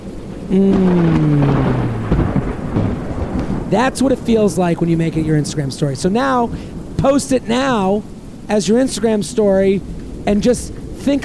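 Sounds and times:
thunder: 0.0s - 7.3s
rain: 0.0s - 11.2s
speech: 0.5s - 2.4s, 3.7s - 11.2s.

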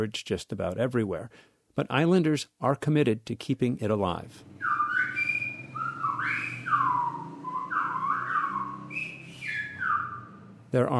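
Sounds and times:
speech: 0.0s - 4.8s, 10.7s - 10.9s
low steady rumble: 4.1s - 10.9s
Silbo whistled language being whistled: 4.5s - 10.8s.

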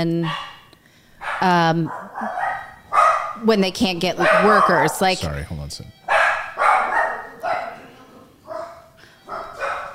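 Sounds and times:
speech: 0.0s - 0.5s, 1.4s - 2.3s, 3.4s - 6.0s
dog barking at a doorbell: 0.2s - 3.5s, 4.1s - 5.1s, 6.1s - 9.9s.

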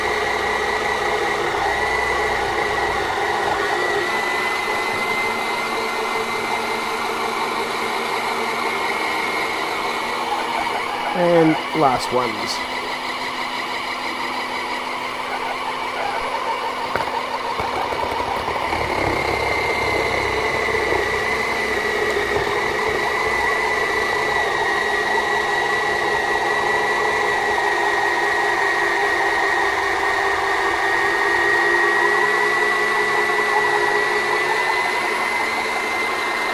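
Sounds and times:
machine motor picking up speed as its cycle finishes: 0.0s - 36.5s
speech: 11.8s - 12.8s.

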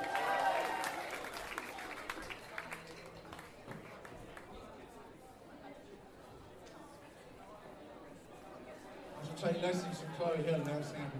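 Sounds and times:
audience whooping and cheering: 0.0s - 1.3s
audience clapping: 0.0s - 4.5s
speech: 9.4s - 11.1s.

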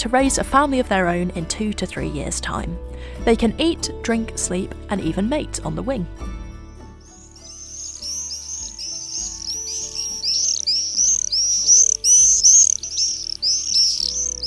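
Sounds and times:
speech: 0.0s - 6.4s
high-pitched bird chirps and twitters: 7.0s - 14.4s.

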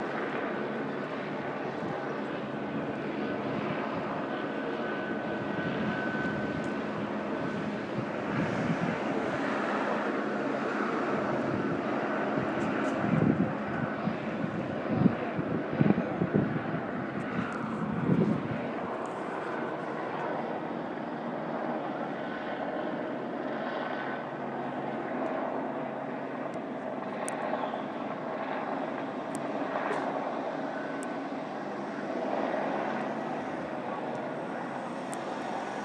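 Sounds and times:
TV helicopter: 0.0s - 35.8s.

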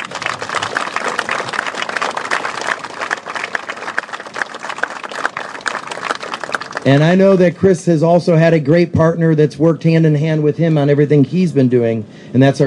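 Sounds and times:
audience applause: 0.0s - 7.2s
speech: 6.8s - 12.6s.

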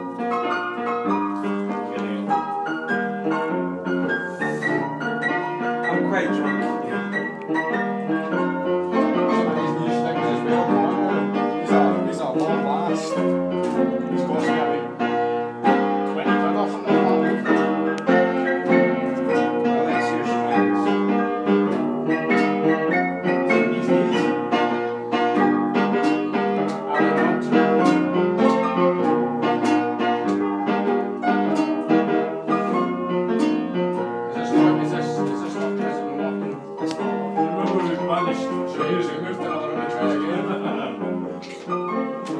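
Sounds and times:
late night piano music: 0.0s - 42.3s
laughter: 37.7s - 41.6s.

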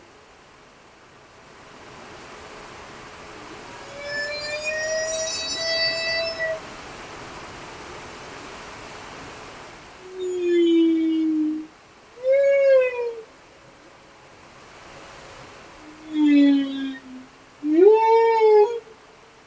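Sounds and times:
humpback whales singing off Westman Islands: 3.7s - 6.7s, 10.1s - 13.3s, 15.8s - 19.0s.

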